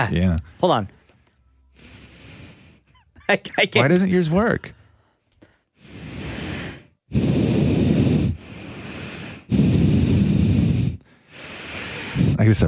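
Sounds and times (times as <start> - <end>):
speech: 0.0 - 1.0, 3.3 - 4.8, 7.1 - 7.4, 12.4 - 12.6
loud exhaling through the nose: 1.8 - 2.9, 5.8 - 12.4.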